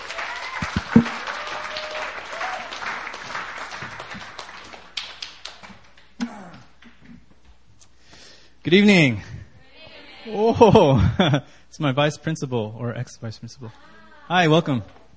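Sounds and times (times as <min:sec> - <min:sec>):
church congregation clapping to welcome a preacher: 0:00.0 - 0:06.2
thumps: 0:00.8 - 0:01.2
speech: 0:00.9 - 0:01.2, 0:08.7 - 0:09.3, 0:10.3 - 0:15.0.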